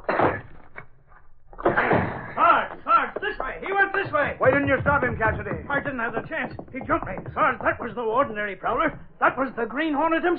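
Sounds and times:
door being forced open: 0:01.6 - 0:09.1
speech: 0:04.3 - 0:10.3.

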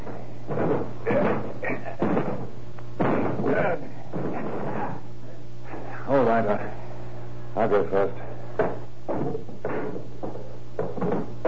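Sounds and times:
heavy booming thuds of a door being broken down: 0:00.0 - 0:05.0, 0:08.6 - 0:11.4
steady low hum: 0:00.0 - 0:11.4.

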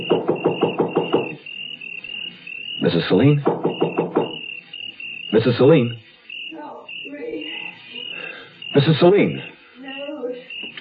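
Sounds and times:
knocking on a door: 0:00.0 - 0:01.4, 0:03.3 - 0:04.4
speech: 0:02.8 - 0:03.5, 0:05.3 - 0:06.0, 0:08.8 - 0:09.5.

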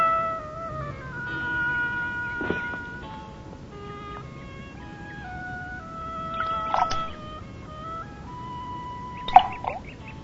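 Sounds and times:
steady sustained tones: 0:00.0 - 0:10.2
pebble plopping into lake water: 0:06.4 - 0:07.1, 0:09.3 - 0:09.8.

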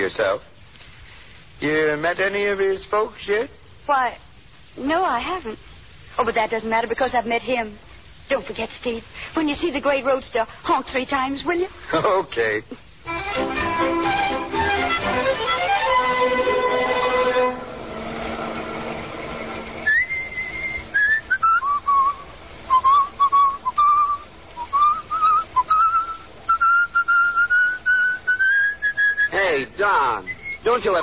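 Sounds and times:
speech: 0:00.0 - 0:00.6, 0:01.6 - 0:14.0, 0:30.8 - 0:31.0
dense sliding tones: 0:13.1 - 0:26.0
person whistling a wavering high melody: 0:19.8 - 0:29.4, 0:30.2 - 0:31.0.

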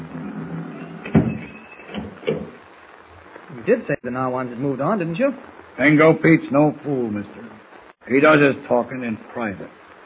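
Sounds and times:
door being closed: 0:00.2 - 0:02.6
speech: 0:03.7 - 0:07.4, 0:08.1 - 0:09.8.

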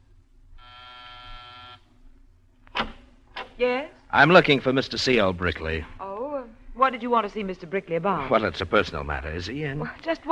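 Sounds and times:
door buzzer: 0:00.6 - 0:01.9
sharp click: 0:02.7 - 0:03.6
speech: 0:03.6 - 0:06.0, 0:06.8 - 0:10.3.

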